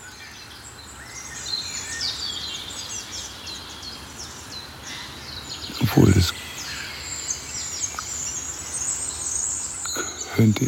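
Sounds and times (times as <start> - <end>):
hiss: 0.0 - 10.6
wood warbler singing: 0.0 - 10.6
speech: 5.9 - 6.4, 10.4 - 10.6.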